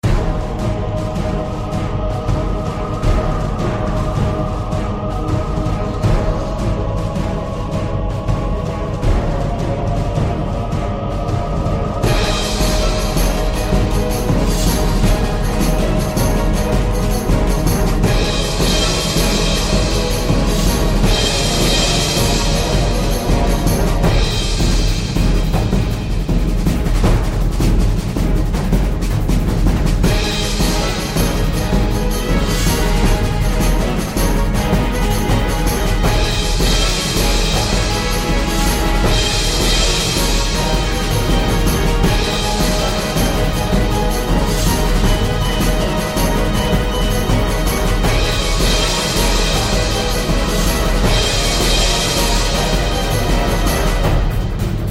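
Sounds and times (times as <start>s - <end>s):
battle music: 0.0s - 54.9s.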